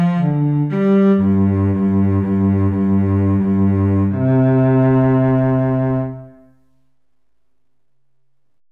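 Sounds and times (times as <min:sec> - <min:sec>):
clarinet and cello piece: 0:00.0 - 0:06.7.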